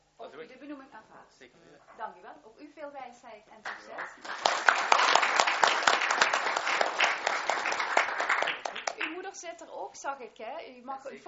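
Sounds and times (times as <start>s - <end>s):
speech: 0.6s - 6.4s, 9.4s - 11.2s
audience applause at an appointment ceremony: 3.7s - 9.2s.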